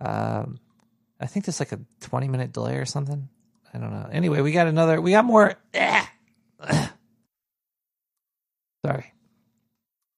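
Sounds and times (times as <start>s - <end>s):
speech: 1.2s - 6.8s
throat clearing: 6.6s - 7.0s.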